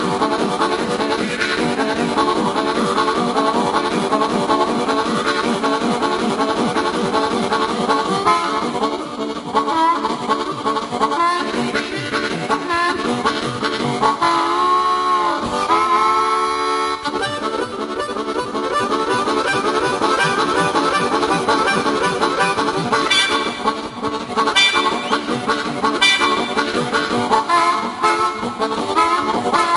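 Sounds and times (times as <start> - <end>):
train: 0.0 - 29.7.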